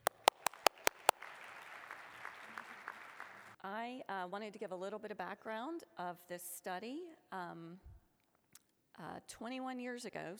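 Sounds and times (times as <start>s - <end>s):
audience applause: 0.0s - 3.5s
speech: 3.6s - 7.9s, 9.0s - 10.3s.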